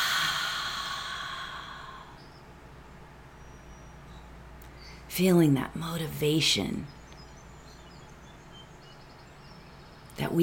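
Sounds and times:
deep exhale at the end of a guided breathing exercise: 0.0 - 2.2
speech: 5.2 - 7.0, 10.2 - 10.4.

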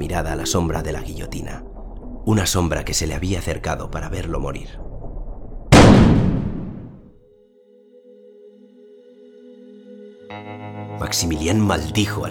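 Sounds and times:
speech: 0.1 - 4.9, 11.0 - 12.3
pistol shot: 5.7 - 7.1.

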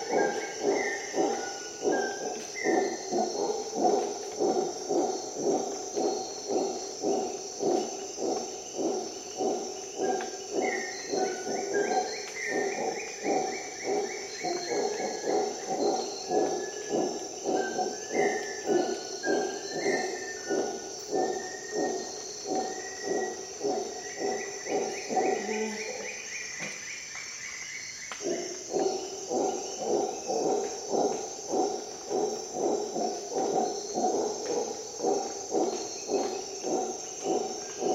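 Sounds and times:
howler monkey grunting roar: 0.0 - 26.3, 28.2 - 37.9
steady insect hum: 0.0 - 37.9.

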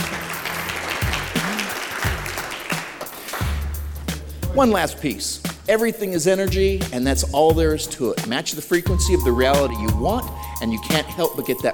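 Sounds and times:
audience clapping: 0.0 - 4.0
speech: 4.6 - 11.7.

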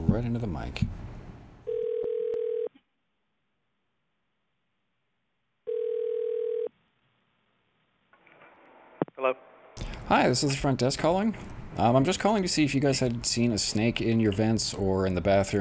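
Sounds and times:
speech: 0.1 - 1.1, 9.2 - 9.5, 10.1 - 15.6
telephone ring tones during call transfer: 1.7 - 2.7, 5.7 - 6.7.

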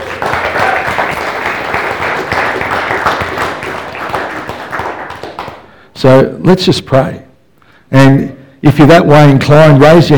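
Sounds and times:
audience clapping: 0.0 - 5.8
speech: 6.0 - 7.2, 7.9 - 10.1.

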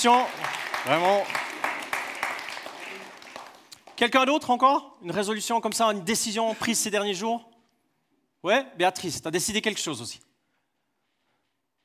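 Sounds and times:
speech: 0.0 - 1.4, 4.0 - 7.5, 8.4 - 10.3
audience applause: 0.0 - 4.2.

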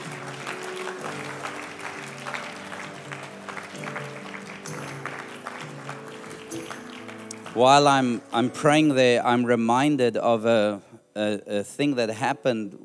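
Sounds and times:
audience applause: 0.0 - 8.4
speech: 7.6 - 12.8.

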